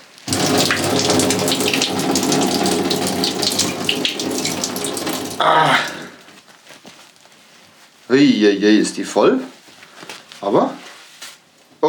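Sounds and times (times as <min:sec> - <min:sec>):
water being poured into a diaper: 0:00.0 - 0:06.2
speech: 0:08.1 - 0:09.5, 0:10.4 - 0:10.8.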